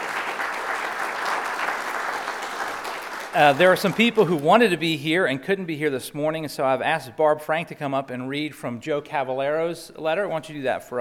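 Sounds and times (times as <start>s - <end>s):
audience round of applause: 0.0s - 4.4s
speech: 3.4s - 10.9s.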